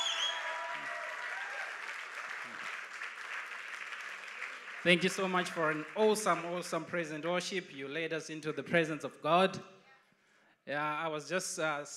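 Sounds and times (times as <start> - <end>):
audience applauding for the band: 0.0 - 6.7
speech: 4.8 - 9.7, 10.7 - 11.9.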